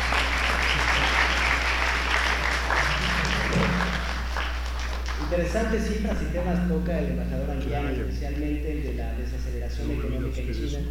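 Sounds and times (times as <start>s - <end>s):
audience applause: 0.0s - 5.4s
speech: 5.4s - 10.9s.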